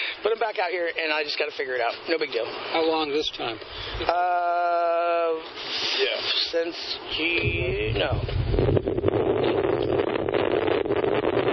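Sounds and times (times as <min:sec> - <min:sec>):
speech: 0:00.3 - 0:08.4
wind blowing straight into the microphone: 0:02.9 - 0:04.3, 0:06.9 - 0:11.5.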